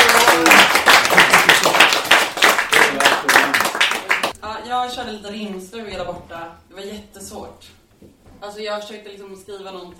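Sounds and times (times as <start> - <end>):
audience applause: 0.0 - 4.3
speech: 5.0 - 9.9.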